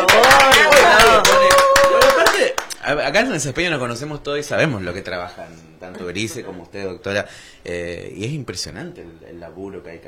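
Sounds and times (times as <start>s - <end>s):
audience applause: 0.0s - 2.7s
speech: 3.1s - 10.0s.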